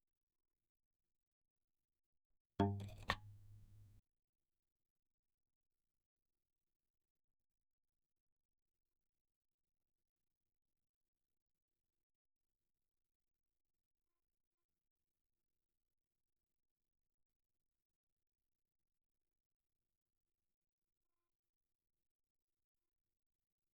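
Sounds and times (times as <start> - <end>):
single one-shot banjo note: 2.6 - 3.9.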